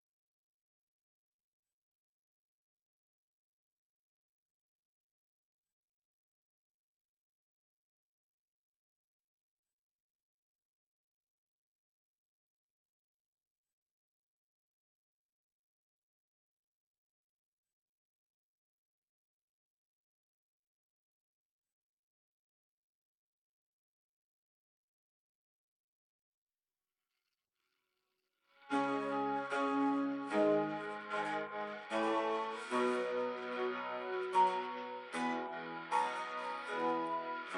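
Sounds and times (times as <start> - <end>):
guitar: 28.7 - 37.5.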